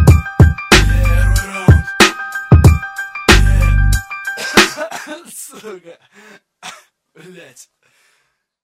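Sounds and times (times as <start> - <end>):
hip hop music: 0.0 - 5.6.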